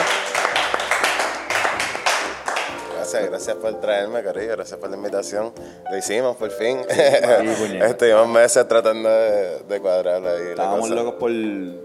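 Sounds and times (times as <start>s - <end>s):
audience applause: 0.0s - 2.9s
speech: 3.1s - 11.8s
laughter: 6.9s - 7.8s.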